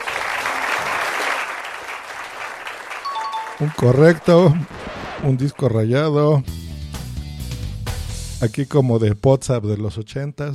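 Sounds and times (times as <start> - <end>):
applause: 0.0 - 5.8
speech: 3.6 - 6.6, 8.4 - 10.5.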